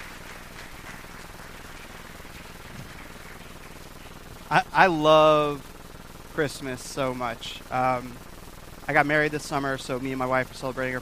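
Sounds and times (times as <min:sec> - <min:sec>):
audience clapping for worship team: 0:00.0 - 0:04.6
speech: 0:04.5 - 0:05.7, 0:06.4 - 0:08.3, 0:08.9 - 0:10.9.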